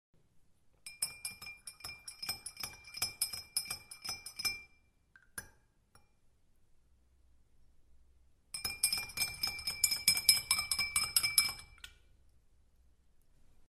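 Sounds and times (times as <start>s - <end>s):
spoon stirring: 0.8s - 6.1s, 8.5s - 12.2s.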